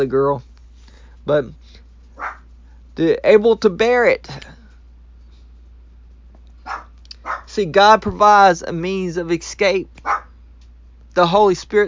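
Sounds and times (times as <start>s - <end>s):
speech: 0.0s - 0.5s, 1.2s - 1.8s, 3.0s - 4.5s, 7.6s - 10.2s, 11.2s - 11.8s
low hum and hiss: 0.0s - 11.8s
pet dog barking: 2.2s - 2.5s, 6.6s - 7.5s, 10.0s - 10.3s.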